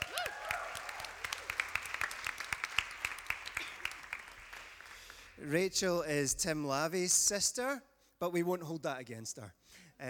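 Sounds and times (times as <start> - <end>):
congregation applauding a guest speaker at a Sunday worship service: 0.0 - 5.4
speech: 5.4 - 10.0.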